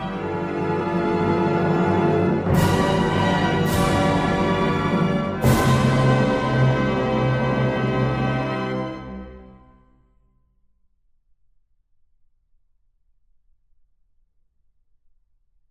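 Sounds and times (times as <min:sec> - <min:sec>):
national anthem instrumental: 0:00.0 - 0:09.6.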